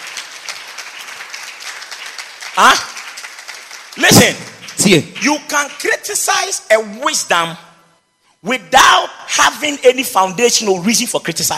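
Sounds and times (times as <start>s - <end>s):
audience clapping: 0.0s - 6.5s
speech: 2.6s - 2.9s, 4.0s - 7.7s, 8.4s - 11.5s.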